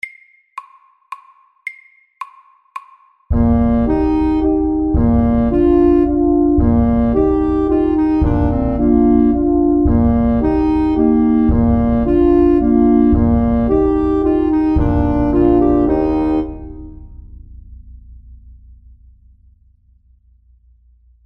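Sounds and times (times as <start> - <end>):
elegant medium-tempo waltz: 3.4 - 17.0.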